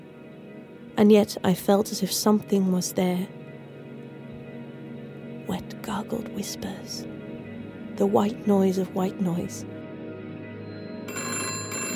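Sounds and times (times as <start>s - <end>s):
speech: 1.0s - 3.4s, 6.1s - 7.2s, 8.0s - 9.8s
telephone ringing: 10.9s - 11.9s.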